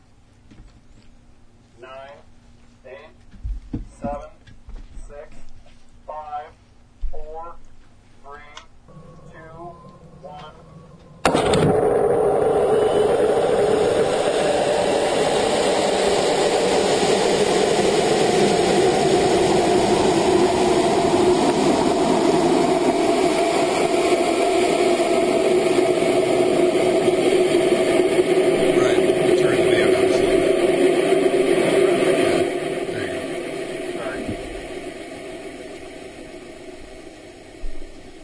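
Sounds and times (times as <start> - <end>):
amateur rocket launch engine roar: 8.2 - 38.2.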